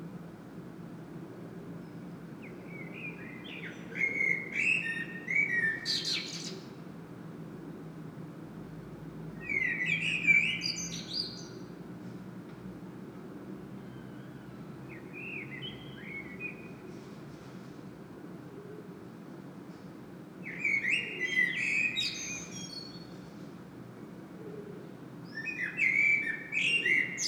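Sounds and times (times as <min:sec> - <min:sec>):
common blackbird song: 0:01.8 - 0:06.7, 0:09.4 - 0:11.7, 0:13.8 - 0:16.9, 0:20.4 - 0:23.2, 0:25.3 - 0:27.2.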